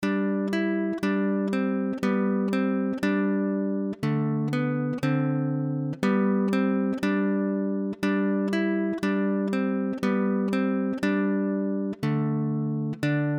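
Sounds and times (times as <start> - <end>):
guitar: 0.0 - 13.3.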